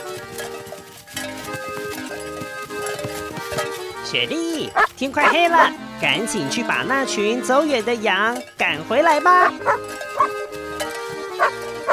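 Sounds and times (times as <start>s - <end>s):
steady music: 0.0s - 11.9s
speech: 4.1s - 10.4s
sheepdog barking: 4.7s - 5.8s, 9.4s - 10.4s, 11.3s - 11.9s.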